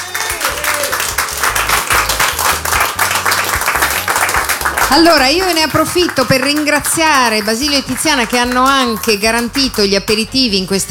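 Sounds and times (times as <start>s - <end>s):
audience applause: 0.0s - 9.8s
speech: 4.9s - 10.8s.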